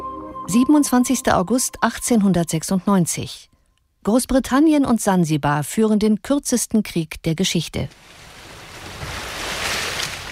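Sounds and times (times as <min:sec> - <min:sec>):
speech: 0:00.5 - 0:03.5, 0:04.0 - 0:08.2
ocean waves gently lapping at the harbour of Zanzibar: 0:08.0 - 0:10.3.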